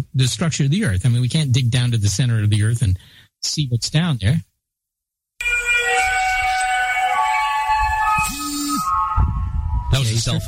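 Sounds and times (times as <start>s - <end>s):
speech: 0.0s - 4.5s, 10.0s - 10.4s
eerie trumpet-like blaring tones in the sky: 5.4s - 10.4s
low rumble: 8.9s - 10.4s.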